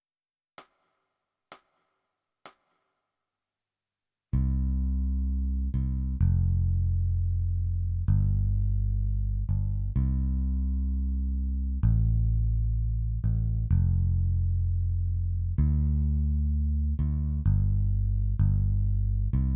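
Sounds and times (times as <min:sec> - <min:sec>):
bass: 0:04.4 - 0:19.5.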